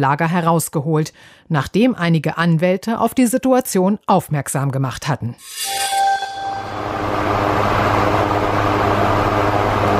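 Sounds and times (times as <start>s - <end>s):
speech: 0.0s - 5.9s
electric fan whirring: 6.6s - 9.9s.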